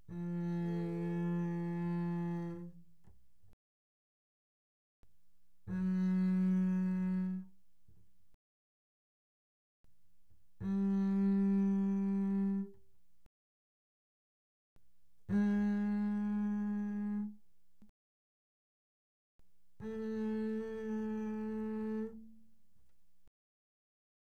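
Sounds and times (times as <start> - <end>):
double bass bowed mezzo forte on A string C3 to A3: 0.0 - 3.0, 5.6 - 7.6, 10.6 - 12.8, 15.3 - 17.4, 19.8 - 22.6.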